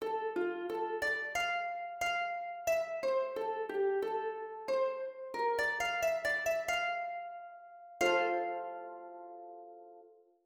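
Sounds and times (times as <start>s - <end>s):
harp: 0.0s - 10.3s.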